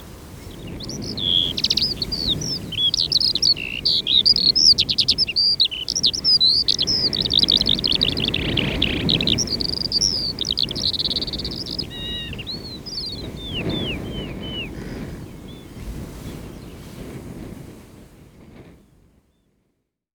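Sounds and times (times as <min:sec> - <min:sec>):
skylark singing in the reeds: 0:00.3 - 0:15.8.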